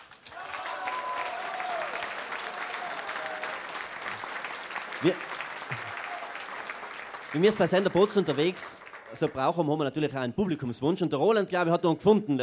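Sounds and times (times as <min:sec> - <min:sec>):
audience applause: 0:00.0 - 0:09.7
speech: 0:05.0 - 0:05.3, 0:07.3 - 0:12.4.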